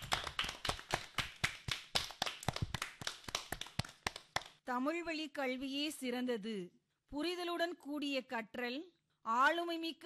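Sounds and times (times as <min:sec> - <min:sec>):
audience applause for a student speaker: 0:00.0 - 0:04.2
speech: 0:04.7 - 0:10.0.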